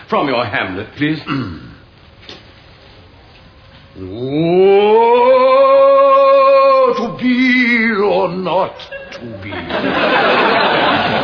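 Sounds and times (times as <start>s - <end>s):
speech: 0.1s - 1.7s, 4.0s - 5.6s, 8.2s - 11.2s
person roaring: 4.0s - 8.4s
laughter: 8.9s - 11.2s.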